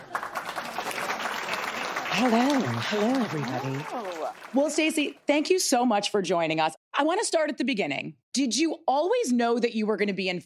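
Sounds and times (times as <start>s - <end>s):
audience applause: 0.0s - 5.1s
speech: 2.2s - 10.4s.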